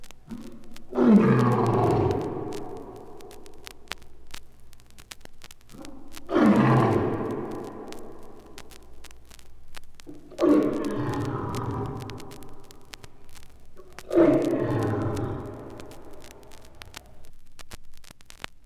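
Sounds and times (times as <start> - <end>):
lions roaring: 0.9 - 2.7, 6.3 - 8.0, 10.2 - 12.4, 14.0 - 16.0.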